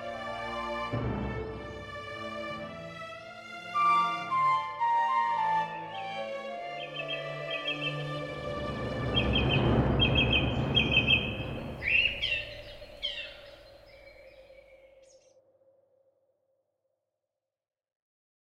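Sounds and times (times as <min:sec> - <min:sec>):
orchestral music: 0:00.0 - 0:13.4.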